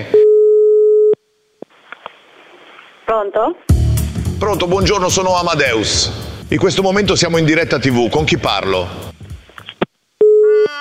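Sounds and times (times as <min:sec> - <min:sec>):
telephone call tone: 0:00.1 - 0:01.2, 0:10.2 - 0:10.7
speech: 0:03.1 - 0:03.7, 0:04.4 - 0:09.1.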